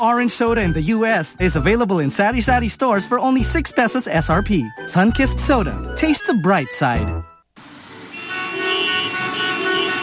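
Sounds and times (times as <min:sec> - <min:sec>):
speech: 0:00.0 - 0:07.3
car horns honking in traffic: 0:08.0 - 0:10.0.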